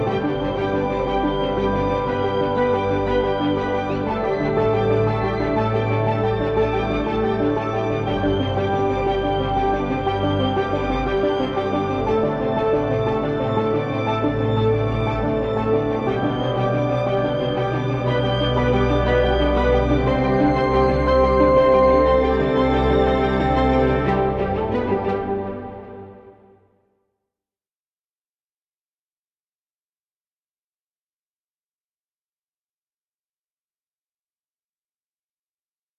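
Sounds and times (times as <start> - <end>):
ambient music: 0.0 - 26.8.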